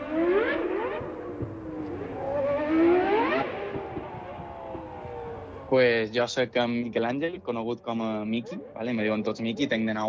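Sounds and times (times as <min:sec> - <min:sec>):
racing car engine revving: 0:00.0 - 0:05.7
speech: 0:05.7 - 0:10.0.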